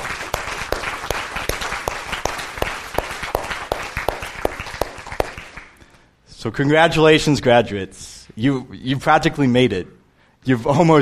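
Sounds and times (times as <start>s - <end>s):
audience applause for graduates: 0.0s - 5.8s
speech: 6.4s - 11.0s.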